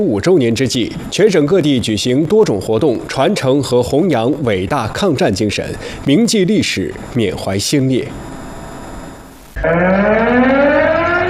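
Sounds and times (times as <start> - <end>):
speech: 0.0 - 8.4, 9.6 - 10.8
hiss: 0.0 - 9.6
civil air defense warning siren: 9.6 - 11.2.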